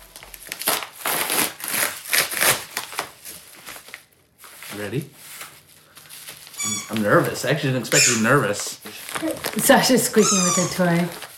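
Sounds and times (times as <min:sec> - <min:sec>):
package being opened: 0:00.0 - 0:04.1, 0:08.9 - 0:09.6
paper crinkling: 0:00.0 - 0:08.2, 0:08.8 - 0:11.3
speech: 0:04.8 - 0:05.3, 0:06.9 - 0:11.3.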